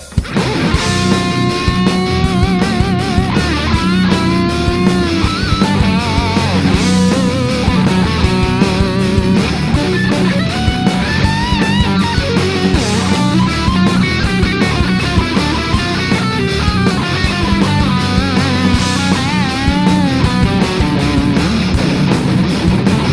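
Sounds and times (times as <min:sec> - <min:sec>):
metal solo in B minor: 0:00.2 - 0:23.1.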